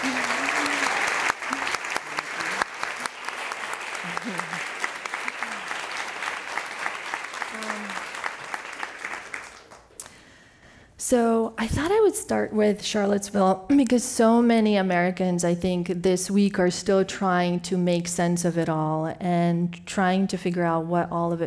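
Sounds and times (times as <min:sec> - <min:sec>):
audience applause: 0:00.0 - 0:10.0
speech: 0:11.1 - 0:21.4.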